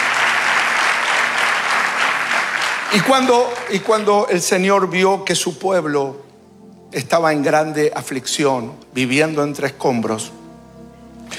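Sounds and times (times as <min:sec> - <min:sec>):
audience applause: 0:00.0 - 0:05.4
speech: 0:02.9 - 0:06.3, 0:06.9 - 0:10.4.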